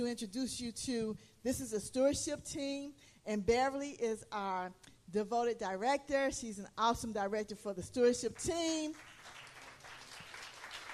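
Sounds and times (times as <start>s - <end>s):
speech: 0.0s - 9.2s
audience clapping: 8.4s - 10.9s.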